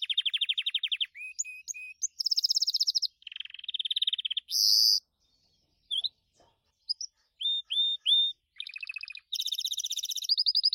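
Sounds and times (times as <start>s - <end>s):
Gloster canary singing: 0.0s - 10.7s.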